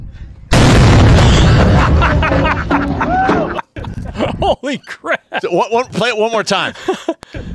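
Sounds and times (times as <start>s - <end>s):
stick-mounted grenade simulator blast: 0.5s - 2.8s
laughter: 1.5s - 5.5s
speech: 4.4s - 7.5s.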